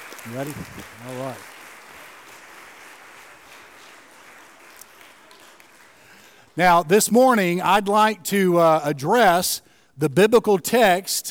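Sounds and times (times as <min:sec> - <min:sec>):
audience clapping: 0:00.0 - 0:07.9
speech: 0:00.2 - 0:01.6, 0:06.6 - 0:11.2.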